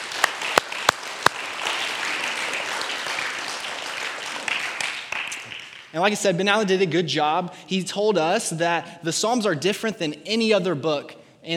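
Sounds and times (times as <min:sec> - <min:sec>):
audience applause: 0:00.0 - 0:05.9
speech: 0:06.0 - 0:11.5.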